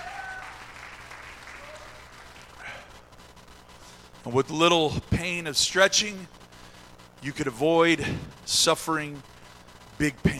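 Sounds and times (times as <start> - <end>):
audience hand clapping: 0.0 - 3.0
speech: 4.2 - 6.4, 7.2 - 9.3, 10.0 - 10.3.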